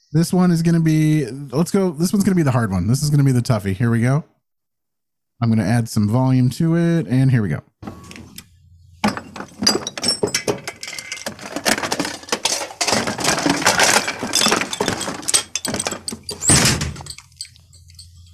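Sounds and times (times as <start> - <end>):
speech: 0.1 - 4.3, 5.4 - 7.7
small objects clattering in a bathroom mirror cabinet: 9.0 - 18.3.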